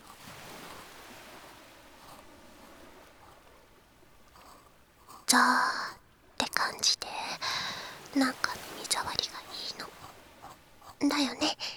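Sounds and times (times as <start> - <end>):
ocean waves: 0.0 - 11.7
speech: 5.3 - 5.8, 8.2 - 10.0, 11.0 - 11.7.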